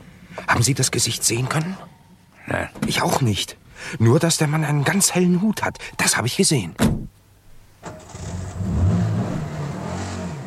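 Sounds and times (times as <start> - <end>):
speech: 0.6 - 7.1
car engine starting and revving as the car pulls away: 7.9 - 10.4.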